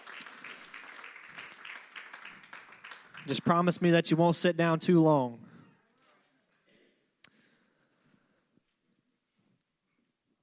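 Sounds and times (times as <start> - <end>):
audience hand clapping: 0.0 - 4.2
speech: 3.2 - 5.5.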